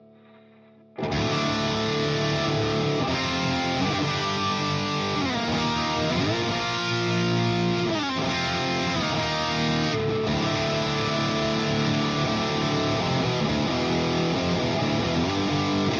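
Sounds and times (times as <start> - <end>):
amp simulated guitar: 0.0 - 15.9.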